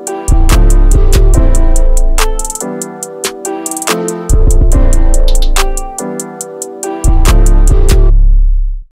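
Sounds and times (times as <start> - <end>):
trap instrumental beat: 0.0 - 8.3.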